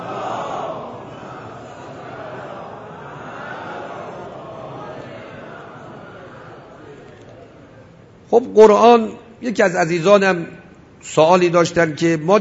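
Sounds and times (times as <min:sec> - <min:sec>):
audience reciting salawat together: 0:00.0 - 0:06.8
speech: 0:08.3 - 0:12.3.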